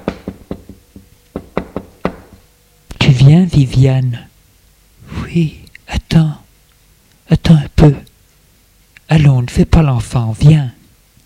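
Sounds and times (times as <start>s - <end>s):
gentle knocking on a door: 0.0s - 2.4s
speech: 3.2s - 4.3s, 5.3s - 5.6s, 7.5s - 8.1s, 9.1s - 10.8s.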